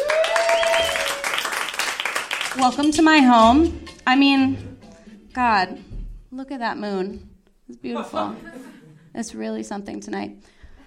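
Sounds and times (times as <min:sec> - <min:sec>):
audience applause welcoming a comedian to the stage at a comedy show: 0:00.0 - 0:02.7
speech: 0:02.6 - 0:04.7, 0:05.3 - 0:08.6, 0:09.2 - 0:10.6
laughter: 0:08.2 - 0:09.2.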